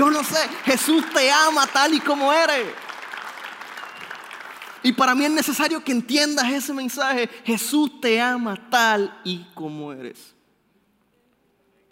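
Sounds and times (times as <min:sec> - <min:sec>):
speech: 0:00.0 - 0:02.9, 0:04.8 - 0:10.4
audience applause: 0:00.0 - 0:05.1.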